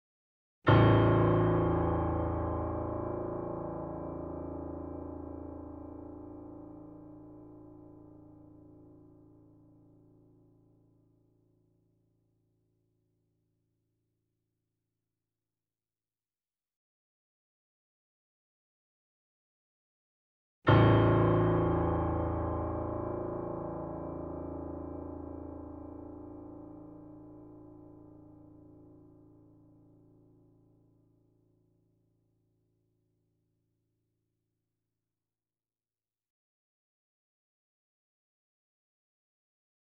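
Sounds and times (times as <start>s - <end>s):
A0 grand piano: 0.7s - 10.2s, 20.7s - 30.6s.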